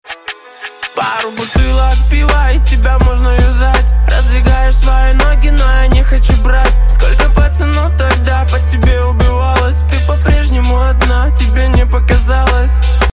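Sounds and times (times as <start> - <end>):
groove music: 0.0 - 13.1.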